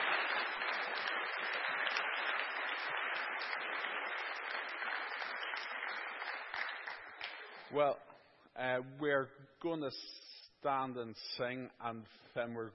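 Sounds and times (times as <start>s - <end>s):
audience applause: 0.0s - 7.7s
speech: 7.7s - 12.7s.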